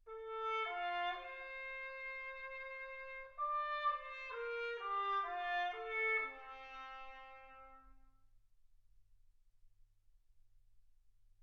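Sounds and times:
trumpet: 0:00.0 - 0:08.2.

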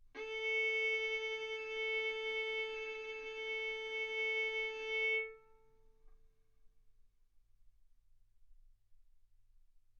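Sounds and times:
violin bowed mezzo-forte on the A string, A4 and B4: 0:00.2 - 0:05.4.

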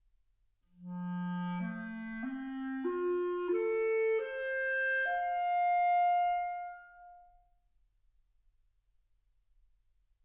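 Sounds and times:
clarinet: 0:00.7 - 0:07.4.

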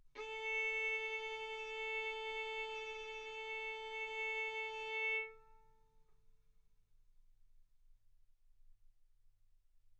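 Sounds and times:
violin bowed mezzo-forte on the A string, A4 and B4: 0:00.2 - 0:05.6.

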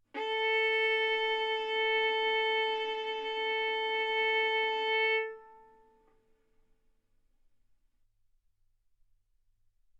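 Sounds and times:
violin arco on A string: 0:00.2 - 0:06.0.

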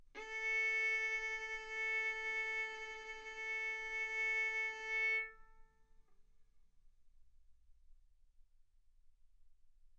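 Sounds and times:
violin bowed mezzo-forte on the A string, A4 and B4: 0:00.2 - 0:05.4.

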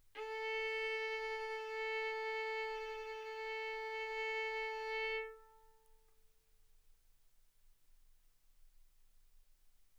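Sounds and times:
violin arco on A string: 0:00.2 - 0:05.8.

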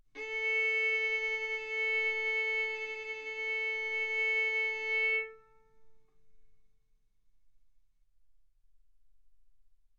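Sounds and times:
violin arco on A string: 0:00.2 - 0:05.6.

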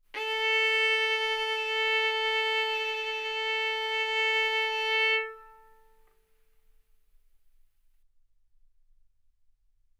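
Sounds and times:
violin bowed arco notes: 0:00.2 - 0:06.1.

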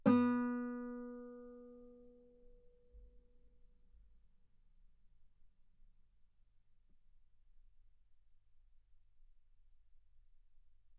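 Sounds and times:
guitar note B3: 0:00.0 - 0:01.8.

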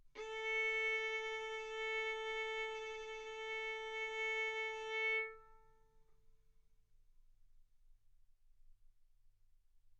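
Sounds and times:
violin bowed mezzo-forte on the A string, A4 and B4: 0:00.2 - 0:05.8.

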